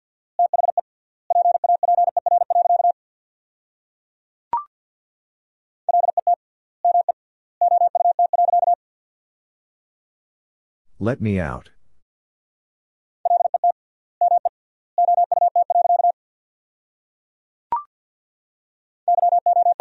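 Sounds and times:
very fast Morse code tones at 50 words per minute: 0.5 - 2.9, 6.9 - 8.8, 13.3 - 16.1, 19.1 - 19.7
speech: 11.0 - 11.8.

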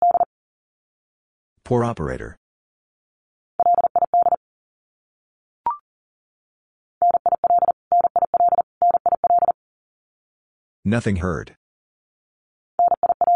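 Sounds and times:
fast Morse code abbreviations at 40 wpm: 0.0 - 0.3, 3.6 - 4.4, 7.0 - 9.6, 12.8 - 13.3
speech: 1.7 - 2.4, 10.8 - 11.6.

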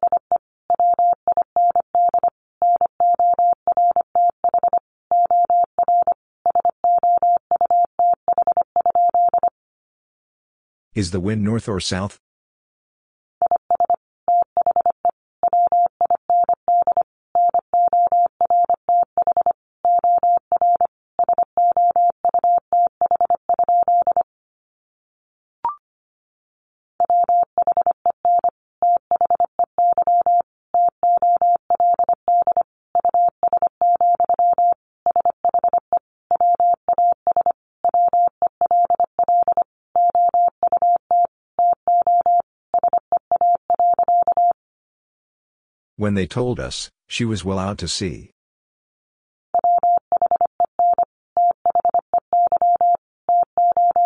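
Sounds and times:
Morse code beeps at 25 words per minute: 0.0 - 9.5, 13.5 - 24.2, 27.0 - 44.6, 49.6 - 54.0
speech: 11.0 - 12.2, 46.0 - 48.3.

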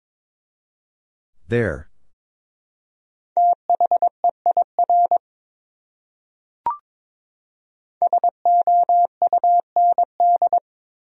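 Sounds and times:
speech: 1.5 - 1.9
morse code beeps: 3.4 - 5.2, 8.1 - 10.6.

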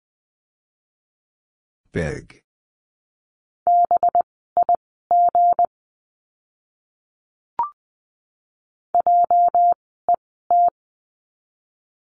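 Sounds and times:
speech: 1.9 - 2.4
Morse code beeps at 20 words per minute: 3.7 - 5.7, 9.0 - 10.7.

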